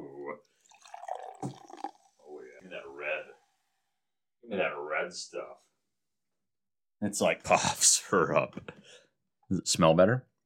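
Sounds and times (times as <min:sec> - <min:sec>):
water being poured into a glass: 0:00.0 - 0:02.4
speech: 0:04.6 - 0:05.7, 0:07.0 - 0:10.3.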